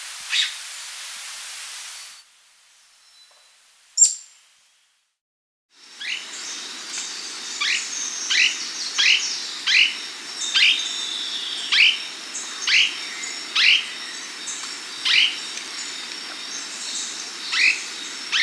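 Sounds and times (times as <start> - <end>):
slaty gnateater giving sharp high descending chirps in South America: 5.9 - 18.4.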